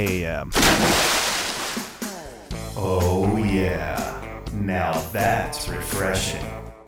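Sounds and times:
speech: 0.0s - 1.2s, 2.8s - 6.6s
splashing water: 0.6s - 2.1s.

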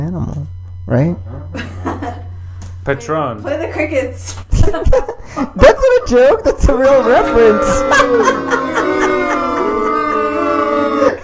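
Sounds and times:
speech: 0.1s - 1.7s, 2.9s - 9.4s
laughter: 1.5s - 2.3s, 4.5s - 11.2s
crowd booing: 6.8s - 11.2s.

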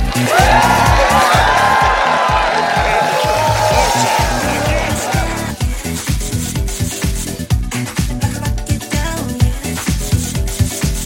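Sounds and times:
crowd cheering and applauding: 0.0s - 6.6s
rhythmic thumping: 0.0s - 11.0s.

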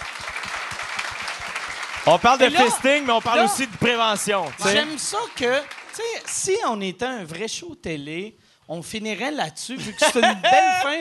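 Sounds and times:
audience applause: 0.0s - 6.6s
speech: 2.1s - 10.9s
laughter: 9.8s - 10.9s.

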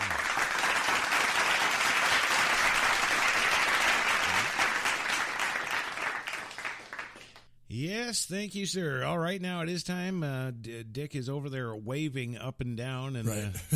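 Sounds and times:
audience applause: 0.0s - 7.4s
speech: 7.8s - 13.7s.

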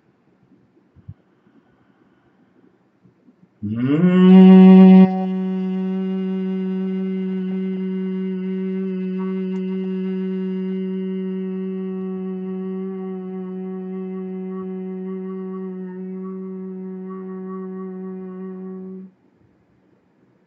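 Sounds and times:
group humming on exhalation: 3.6s - 19.0s.

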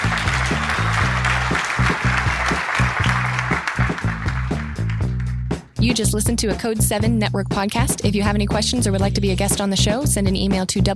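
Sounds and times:
applause: 0.0s - 5.6s
speech: 5.8s - 10.9s.

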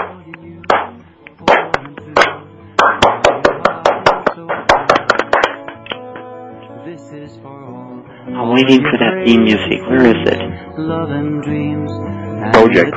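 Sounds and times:
people clapping hands: 1.5s - 6.1s
speech: 7.1s - 12.9s.

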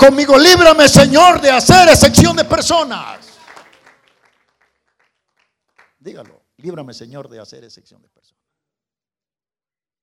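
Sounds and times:
speech: 0.0s - 3.3s, 6.0s - 8.4s
audience applause: 3.0s - 6.3s.

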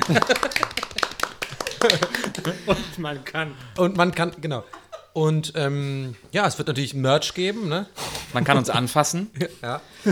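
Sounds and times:
hand clapping: 0.0s - 2.9s
laughter: 0.0s - 3.3s, 4.6s - 5.2s, 8.2s - 10.0s
speech: 0.1s - 1.1s, 1.8s - 10.0s.

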